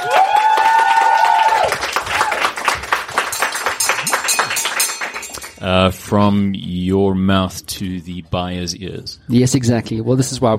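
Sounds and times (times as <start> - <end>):
high-pitched whoop: 0.0 - 2.5
round of applause: 0.0 - 5.6
speech: 5.6 - 10.5.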